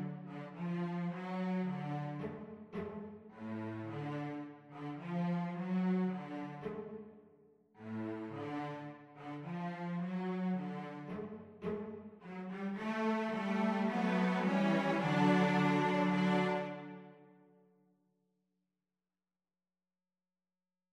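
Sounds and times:
cello trio playing: 0.0s - 6.8s, 7.8s - 17.1s.

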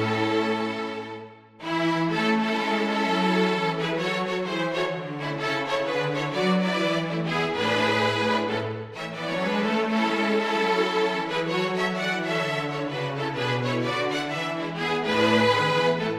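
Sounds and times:
string quartet playing jazz carol: 0.0s - 16.1s.

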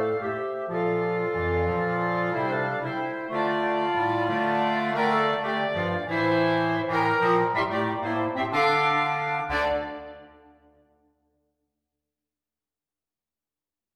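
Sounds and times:
clarinet choir: 0.0s - 10.6s.

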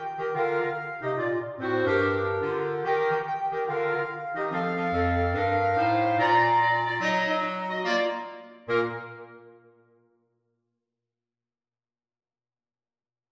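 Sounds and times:
clarinet: 0.0s - 9.8s.

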